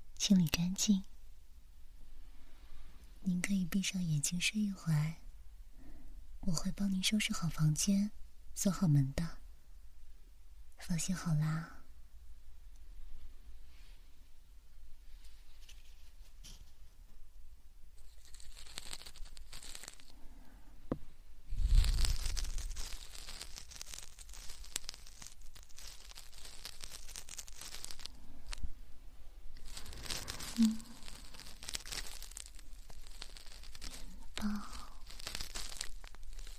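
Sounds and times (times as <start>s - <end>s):
speech: 0.2s - 1.1s, 3.2s - 5.2s, 6.4s - 9.4s, 10.8s - 11.8s
rustling: 12.7s - 36.5s
gentle ear canal scraping: 15.0s - 17.0s, 18.0s - 36.5s.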